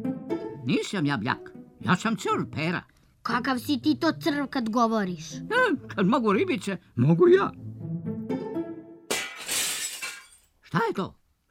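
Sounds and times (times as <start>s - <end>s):
speech: 0.7s - 7.6s, 10.8s - 11.2s
drinking glass shattering: 9.1s - 10.6s
glass shards tinkling: 9.2s - 10.5s.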